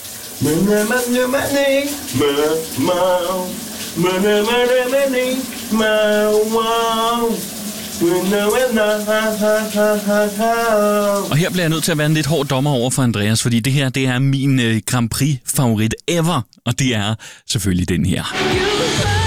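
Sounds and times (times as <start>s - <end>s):
shower water running: 0.0s - 12.6s
man singing in the shower: 0.4s - 12.4s, 18.3s - 19.2s
speech: 0.4s - 19.1s.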